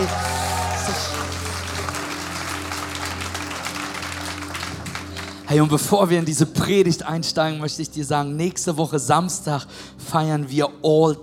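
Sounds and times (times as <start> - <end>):
audience applause: 0.0 - 5.8
speech: 5.5 - 11.2.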